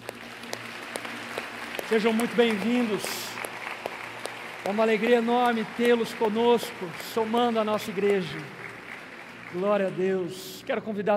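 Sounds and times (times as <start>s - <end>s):
crowd applauding: 0.0s - 11.0s
speech: 1.9s - 3.3s, 4.7s - 8.6s, 9.5s - 11.1s.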